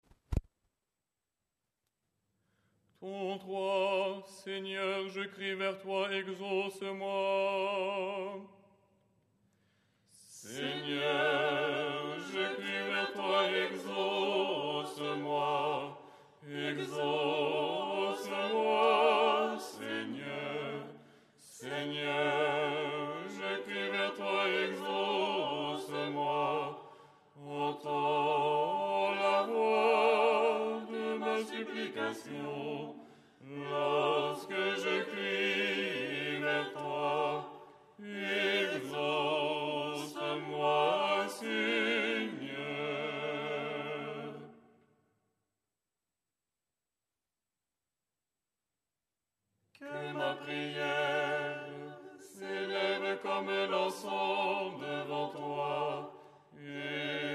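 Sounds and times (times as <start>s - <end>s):
ensemble chanting lucernaire stichera: 3.0s - 8.5s, 10.2s - 44.7s, 49.8s - 57.3s.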